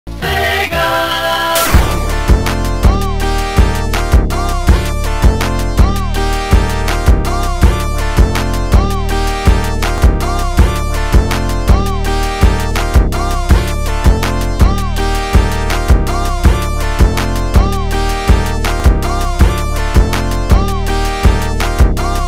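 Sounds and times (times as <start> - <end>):
phonk remix: 0.2 - 22.2.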